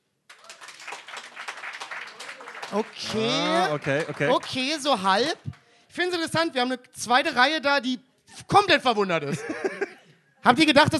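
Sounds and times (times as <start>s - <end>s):
audience clapping: 0.2s - 5.7s
laughter: 2.7s - 4.5s, 9.2s - 10.2s
speech: 2.7s - 9.8s, 10.4s - 10.9s.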